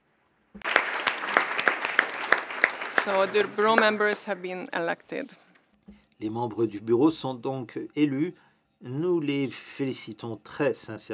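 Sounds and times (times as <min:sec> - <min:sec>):
applause electing committee members by acclamation: 0:00.6 - 0:04.8
speech: 0:03.0 - 0:11.1.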